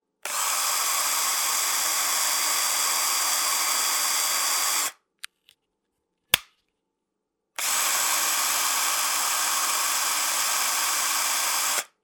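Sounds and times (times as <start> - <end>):
screwdriver: 0.2 - 4.9, 7.6 - 11.9.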